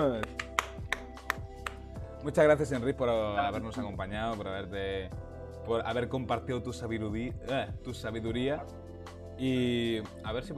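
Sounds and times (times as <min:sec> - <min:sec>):
speech: 0:00.0 - 0:00.4, 0:02.2 - 0:10.5
applause: 0:00.2 - 0:01.8.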